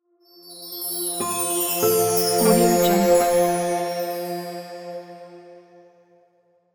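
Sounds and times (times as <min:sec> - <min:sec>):
fairy intro sound: 0:02.0 - 0:04.6.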